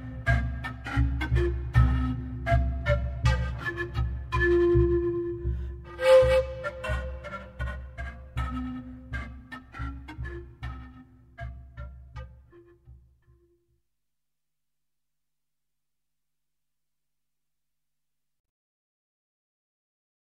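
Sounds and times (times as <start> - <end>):
pan flute: 0.0 - 13.5.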